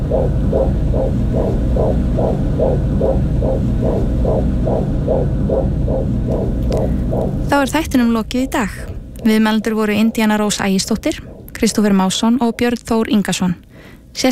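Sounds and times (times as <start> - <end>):
constant low hum: 0.0 - 14.3
recorded heartbeat of an unborn baby: 0.0 - 14.3
speech: 0.1 - 14.3.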